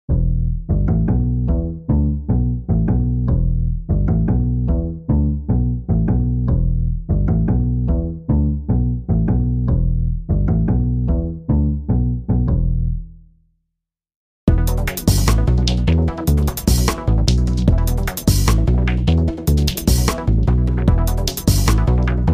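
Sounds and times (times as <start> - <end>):
bass: 0.0 - 13.6, 14.5 - 22.3.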